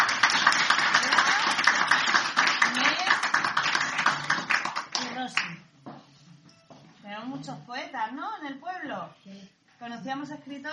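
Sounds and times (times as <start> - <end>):
audience applause: 0.0 - 5.1
speech: 9.9 - 10.7.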